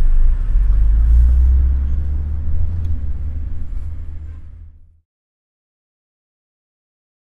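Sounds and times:
city traffic roar: 0.1 - 4.9.

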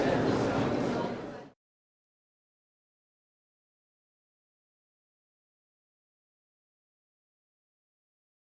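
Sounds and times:
indoor mixed chatter: 0.0 - 1.6.

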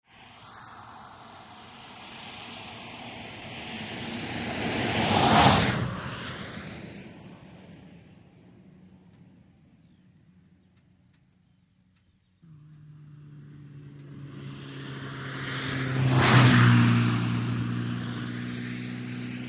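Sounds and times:
cars passing on highway, light traffic: 0.1 - 11.4, 12.0 - 19.4.

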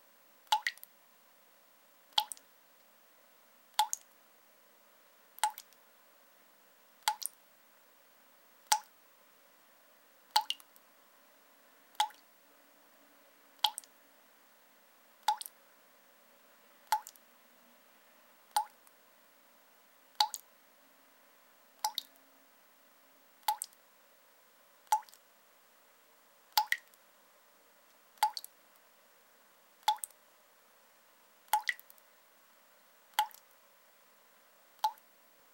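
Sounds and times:
water dripping in a sink or tub: 0.4 - 0.9, 2.1 - 2.5, 3.7 - 4.2, 5.4 - 5.8, 7.0 - 7.4, 8.6 - 9.0, 10.3 - 10.8, 11.9 - 12.3, 13.6 - 13.9, 15.2 - 15.6, 16.8 - 17.2, 18.5 - 19.0, 20.1 - 20.5, 21.8 - 22.2, 23.4 - 23.8, 24.8 - 25.2, 26.5 - 27.0, 27.9 - 28.6, 29.8 - 30.2, 31.5 - 32.0, 33.1 - 33.6, 34.8 - 35.1.

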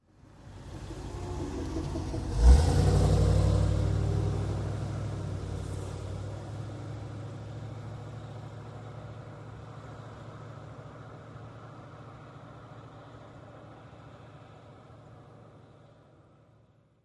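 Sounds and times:
car passing at medium speed and accelerating away: 0.5 - 8.5.

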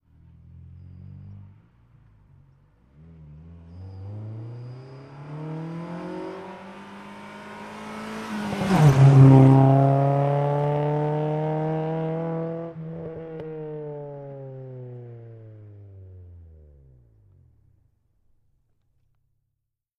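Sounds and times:
Acura Integra approaching and passing at medium speed: 2.9 - 12.8.

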